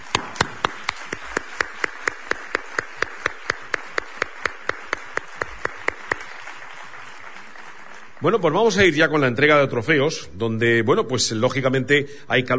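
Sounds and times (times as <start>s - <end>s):
rhythmic clapping in unison: 0.0s - 8.9s
speech: 8.2s - 12.5s.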